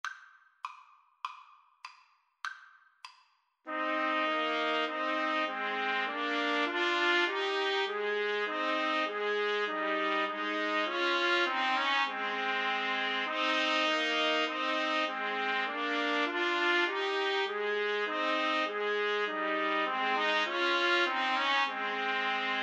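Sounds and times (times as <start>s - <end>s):
trumpet trio playing: 3.7s - 22.6s.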